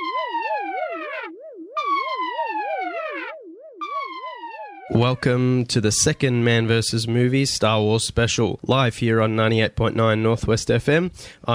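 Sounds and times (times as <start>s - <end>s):
high descending tone blasts: 0.0s - 5.6s
warbling alarm siren: 0.0s - 5.6s
speech: 4.9s - 11.5s.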